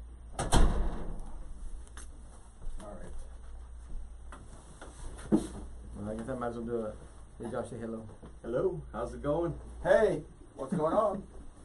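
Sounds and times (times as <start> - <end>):
door pushed shut: 0.3 - 1.2
speech: 5.3 - 5.5, 6.3 - 11.4.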